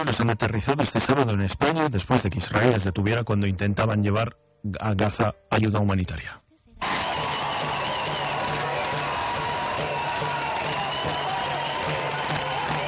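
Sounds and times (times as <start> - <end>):
speech: 0.0 - 6.4
airport crowd applauding and cheering arrivals: 6.8 - 12.8.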